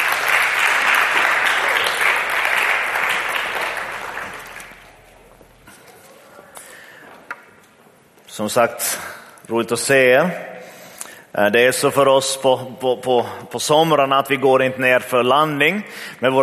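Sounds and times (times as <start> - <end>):
audience applause: 0.0 - 5.4
speech: 8.4 - 10.5, 11.4 - 16.4.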